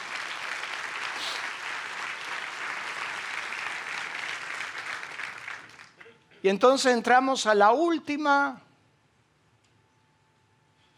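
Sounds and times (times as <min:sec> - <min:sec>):
loud audience applause: 0:00.0 - 0:06.0
speech: 0:06.4 - 0:08.6.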